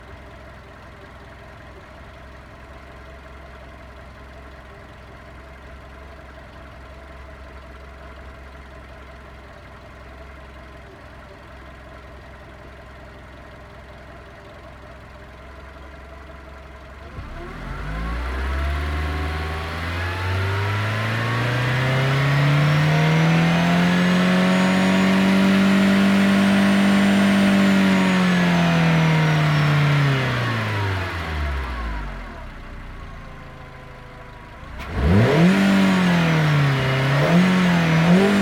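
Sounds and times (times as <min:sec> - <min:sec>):
Volkswagen Golf V 1.6 FSI engine starting, idling and revving: 0:17.0 - 0:38.4.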